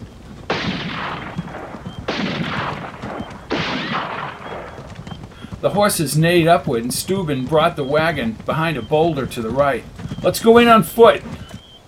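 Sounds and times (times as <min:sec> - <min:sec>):
rifle gunshot: 0:00.5 - 0:05.2
speech: 0:05.6 - 0:11.4.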